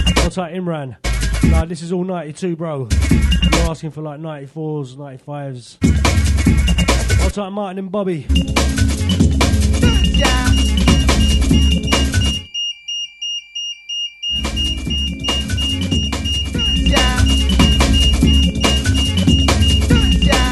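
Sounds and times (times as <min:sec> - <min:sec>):
speech: 0:00.3 - 0:09.3
smoke alarm beeping: 0:08.3 - 0:20.5.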